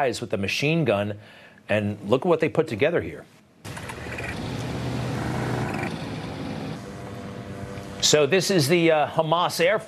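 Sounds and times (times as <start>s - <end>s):
speech: 0.0s - 3.4s, 8.0s - 9.8s
motorized paraglider engine with giant fan: 3.7s - 6.8s.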